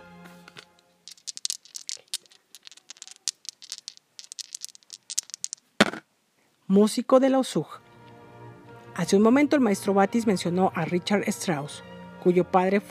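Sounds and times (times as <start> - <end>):
dice rattling and clattering: 0.5 - 6.0
speech: 6.7 - 7.8, 9.0 - 12.9.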